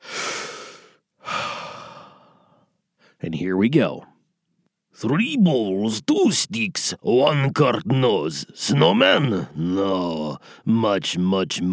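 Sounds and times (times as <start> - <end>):
person taking a deep breath: 0.0 - 3.2, 10.4 - 10.6
speech: 3.2 - 4.1, 5.0 - 11.7.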